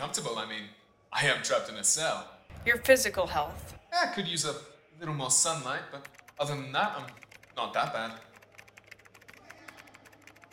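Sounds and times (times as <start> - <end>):
speech: 0.0 - 8.3
typing on a keyboard: 6.0 - 10.5.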